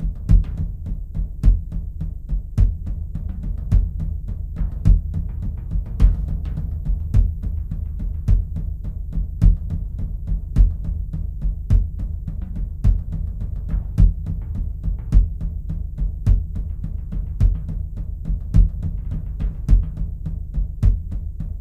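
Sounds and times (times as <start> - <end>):
shamanic drumming: 0.0 - 21.6.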